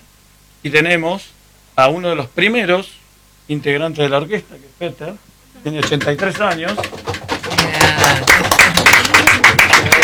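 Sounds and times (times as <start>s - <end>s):
speech: 0.6s - 7.1s, 8.0s - 8.5s
musicians' applause tapping strings and drums: 5.8s - 10.0s.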